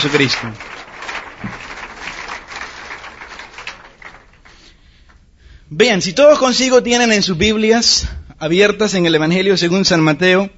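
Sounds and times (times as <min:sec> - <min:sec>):
speech: 0:00.0 - 0:00.8, 0:05.7 - 0:10.5
audience applause: 0:00.0 - 0:05.2.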